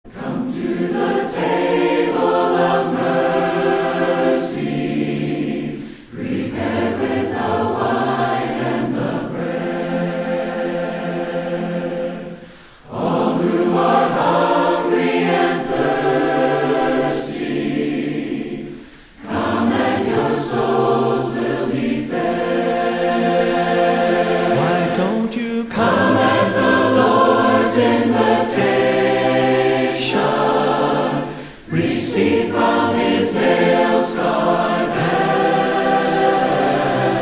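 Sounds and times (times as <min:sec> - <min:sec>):
a cappella hymn: 0:00.0 - 0:37.2.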